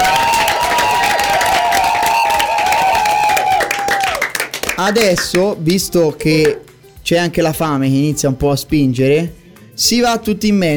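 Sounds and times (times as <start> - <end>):
crowd applause and cheering: 0.0 - 5.4
speech: 4.8 - 10.7.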